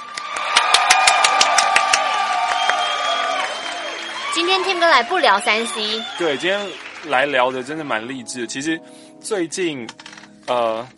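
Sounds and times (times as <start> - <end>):
applause welcoming guests: 0.0 - 8.0
speech: 4.6 - 10.9.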